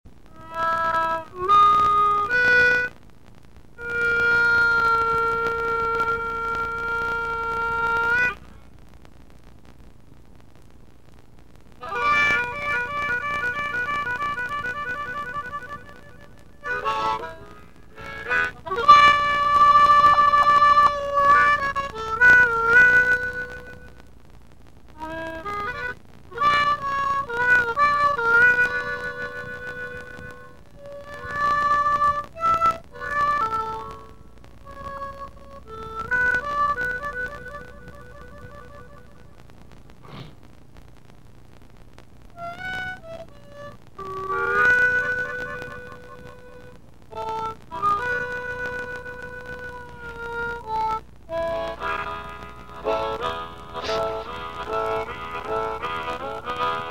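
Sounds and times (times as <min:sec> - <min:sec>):
harmonica: 0:00.3 - 0:03.0, 0:03.8 - 0:08.4, 0:11.8 - 0:24.0, 0:24.9 - 0:40.3, 0:42.4 - 0:56.9.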